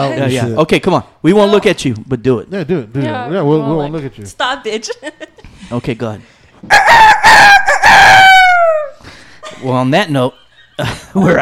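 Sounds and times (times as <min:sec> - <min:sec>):
speech: 0:00.0 - 0:07.5, 0:09.6 - 0:11.3
rooster crowing: 0:06.7 - 0:09.0
laughter: 0:09.1 - 0:11.3.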